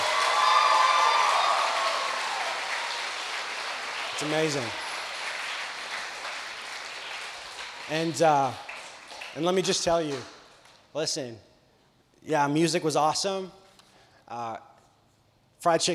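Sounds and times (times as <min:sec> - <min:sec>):
audience applause: 0:00.0 - 0:10.4
speech: 0:04.2 - 0:04.8, 0:07.9 - 0:08.6, 0:09.3 - 0:10.3, 0:10.9 - 0:11.5, 0:12.2 - 0:13.6, 0:14.3 - 0:14.7, 0:15.6 - 0:15.9.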